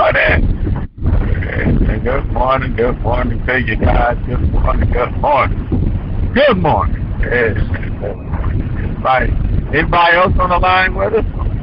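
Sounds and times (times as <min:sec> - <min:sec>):
road rumble of a car being driven: 0:00.0 - 0:11.6
wind buffeting around a driving car: 0:00.0 - 0:11.6
speech: 0:02.0 - 0:08.3, 0:09.0 - 0:11.3.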